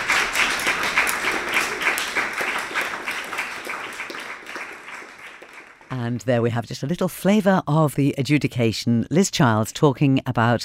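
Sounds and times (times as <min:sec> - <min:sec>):
crowd applauding: 0:00.0 - 0:06.0
speech: 0:06.0 - 0:10.6.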